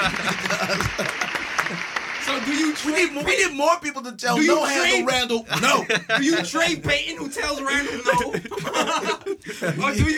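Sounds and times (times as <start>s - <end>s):
applause sound effect: 0.0s - 3.1s
laughter: 0.0s - 3.7s, 4.3s - 10.1s
speech: 2.8s - 10.1s.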